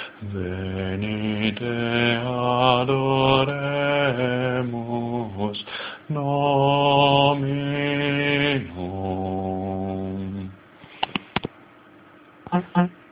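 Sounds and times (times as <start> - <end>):
bass choir singing: 0.2 - 10.6.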